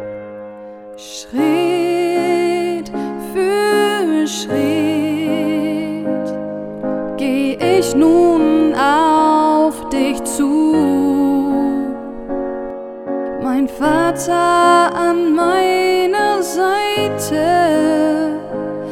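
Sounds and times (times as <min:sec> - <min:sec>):
wedding singer singing: 0:01.0 - 0:06.4, 0:07.1 - 0:12.2, 0:13.3 - 0:18.9.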